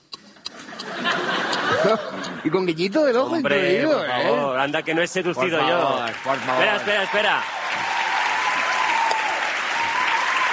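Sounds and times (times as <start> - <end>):
laughter: 0.5 - 4.1
speech: 1.8 - 7.6
audience applause: 5.4 - 10.5.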